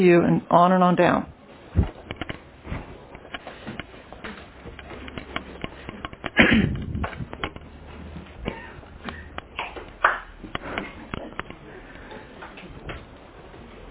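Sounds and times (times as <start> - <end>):
speech: 0.0 - 1.3
hand claps passed around a group: 8.5 - 11.6.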